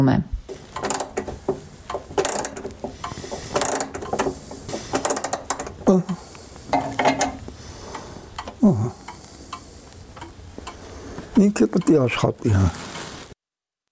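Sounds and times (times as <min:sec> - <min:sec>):
speech: 0:00.0 - 0:00.3, 0:05.9 - 0:06.2, 0:08.6 - 0:09.0, 0:11.4 - 0:12.9
60-year-old wall clock wound with an iron key: 0:00.5 - 0:10.8.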